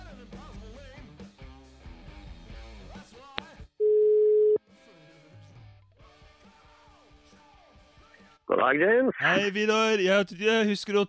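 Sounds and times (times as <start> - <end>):
telephone dial tone: 3.8 - 4.6
speech: 8.6 - 11.0.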